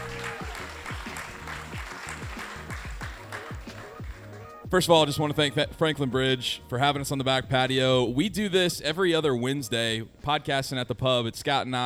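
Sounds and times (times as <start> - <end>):
audience clapping: 0.0 - 4.6
speech: 4.7 - 11.8.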